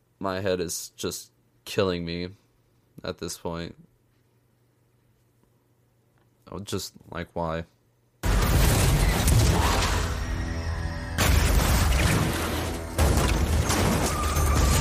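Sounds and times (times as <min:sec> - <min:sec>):
speech: 0:00.2 - 0:02.4, 0:03.0 - 0:03.9, 0:06.5 - 0:07.8
car crash in film: 0:08.2 - 0:14.8.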